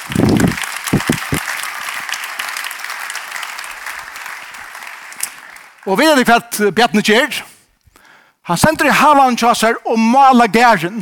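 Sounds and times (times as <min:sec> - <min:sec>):
crowd of people applauding: 0:00.0 - 0:06.3
speech: 0:05.8 - 0:07.5, 0:08.5 - 0:11.0.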